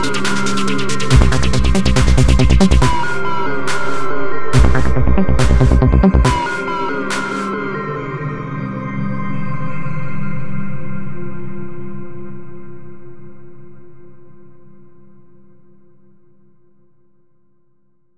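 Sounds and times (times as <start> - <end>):
psytrance music: 0.0 - 9.1.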